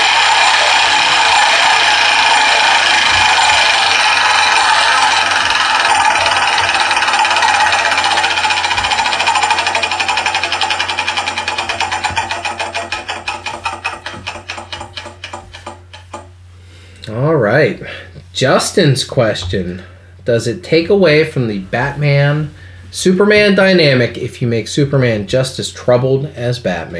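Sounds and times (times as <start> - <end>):
prize wheel spinning with ratcheting clicks: 0.0 - 16.2
speech: 18.4 - 26.9.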